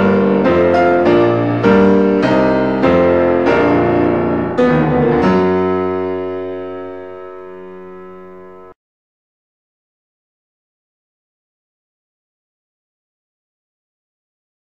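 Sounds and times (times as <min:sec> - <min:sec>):
piano piece: 0:00.0 - 0:08.8.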